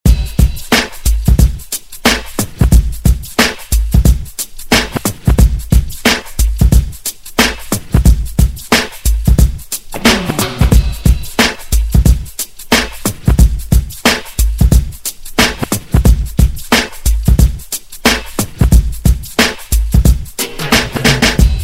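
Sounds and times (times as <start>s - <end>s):
extended reggae drum beat: 0.0s - 21.6s.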